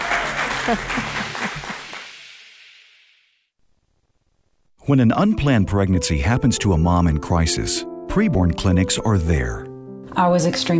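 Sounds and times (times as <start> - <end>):
studio audience applause: 0.0 - 2.1
speech: 0.7 - 1.2, 4.9 - 10.7.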